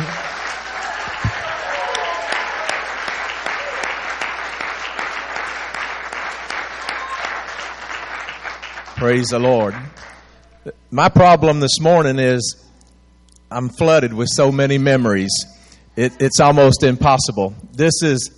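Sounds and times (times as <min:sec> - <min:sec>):
audience hand clapping applause: 0:00.0 - 0:10.4
speech: 0:09.0 - 0:10.0, 0:10.6 - 0:12.6, 0:13.5 - 0:18.3.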